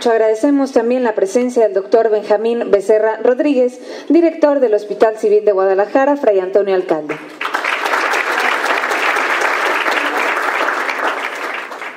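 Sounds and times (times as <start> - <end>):
speech: 0.0 - 7.5
loud audience applause: 7.2 - 11.9.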